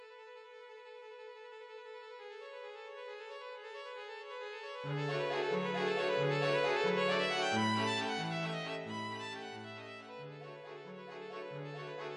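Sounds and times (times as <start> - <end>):
waltz music: 4.9 - 12.1.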